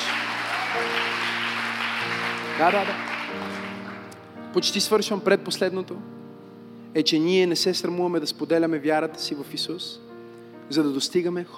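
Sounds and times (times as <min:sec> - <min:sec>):
audience applause: 0:00.0 - 0:04.2
speech: 0:02.6 - 0:03.6, 0:04.5 - 0:06.2, 0:06.9 - 0:10.0, 0:10.7 - 0:11.5.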